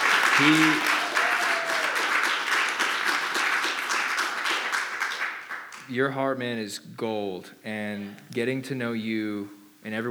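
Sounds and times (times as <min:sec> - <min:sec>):
crowd applauding: 0:00.0 - 0:05.9
person whooping: 0:00.3 - 0:02.2
speech: 0:00.4 - 0:00.9, 0:05.9 - 0:10.0.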